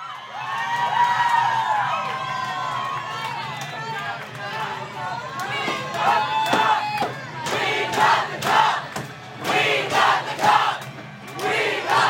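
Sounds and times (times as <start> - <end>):
hockey fans cheering and chanting in a bar: 0.0 - 12.0.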